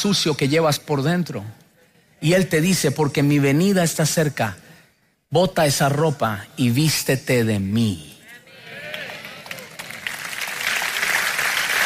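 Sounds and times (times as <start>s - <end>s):
speech: 0.0s - 1.6s, 2.2s - 4.6s, 5.3s - 8.1s
audience applauding: 8.8s - 11.8s.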